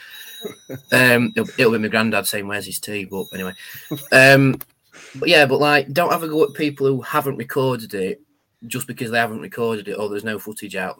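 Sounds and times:
phone ringing: 0.0 - 4.5
speech: 0.4 - 10.9.

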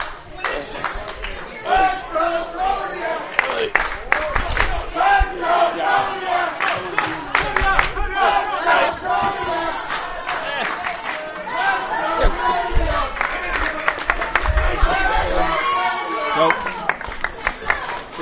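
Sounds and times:
wrestling crowd cheering, shouting and clapping: 0.0 - 18.1.

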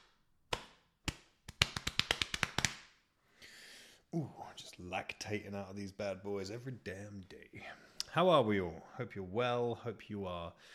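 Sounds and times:
open hand slapping own chest: 0.0 - 3.0
speech: 4.1 - 10.7.

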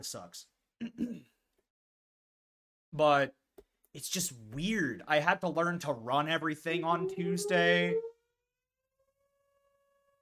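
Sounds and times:
speech: 0.0 - 1.2, 3.0 - 8.1
tornado siren: 6.7 - 8.2, 9.0 - 10.2.

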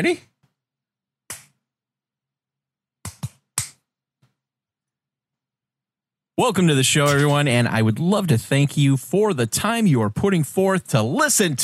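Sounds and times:
speech: 0.0 - 0.3, 6.4 - 11.6
hand clap for syncing audio: 1.3 - 1.6, 3.0 - 3.8.

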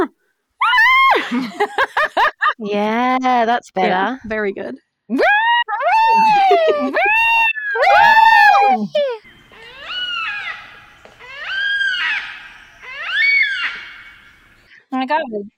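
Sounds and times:
laughter: 1.0 - 2.6, 5.8 - 9.2
speech: 1.2 - 5.4, 6.1 - 7.2, 15.0 - 15.5
yellow-tailed black cockatoo wailing calls: 5.2 - 14.7.

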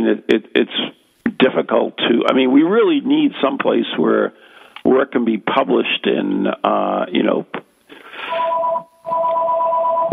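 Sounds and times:
speech: 1.5 - 7.6
two-tone electronic beep on a phone line: 8.3 - 10.1.

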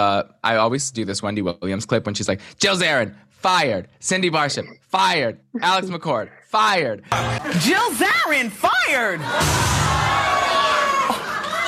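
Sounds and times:
speech: 0.0 - 10.0
laughter: 5.6 - 6.4, 10.8 - 11.6
crowd cheering: 7.1 - 8.2, 8.9 - 11.6.

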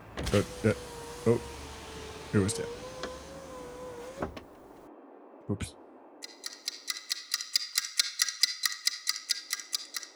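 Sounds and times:
car power window motor whining: 0.0 - 4.8
speech: 0.3 - 1.6, 2.3 - 2.8, 4.2 - 4.4, 5.5 - 5.8.

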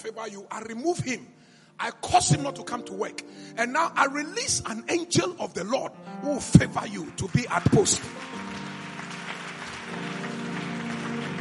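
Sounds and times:
speech: 0.0 - 8.5
audience clapping: 6.6 - 11.3.

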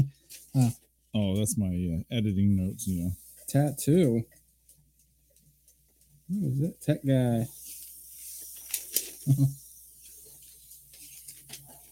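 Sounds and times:
speech: 0.0 - 4.4, 6.3 - 7.6, 9.3 - 9.6
clothes steamer hissing steam: 2.6 - 4.2, 6.4 - 11.0.

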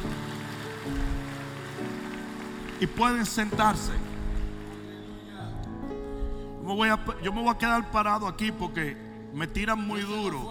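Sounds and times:
audience applause: 0.0 - 5.4
speech: 2.8 - 4.1, 6.7 - 10.5.

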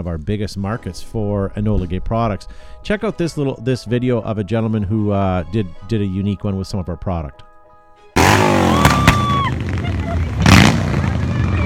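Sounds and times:
speech: 0.0 - 7.5
motorcycle engine roaring down a street: 8.2 - 11.6.

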